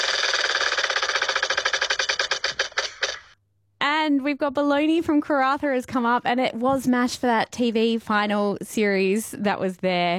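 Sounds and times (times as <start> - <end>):
prize wheel spinning with sharp clicks: 0.0 - 3.4
speech: 4.1 - 10.1.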